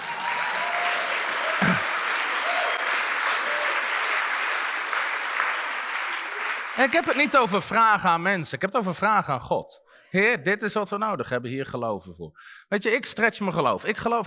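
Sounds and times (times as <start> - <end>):
faint cheers and whistles: 0.0 - 4.2
audience applause: 0.0 - 7.8
speech: 6.8 - 14.2.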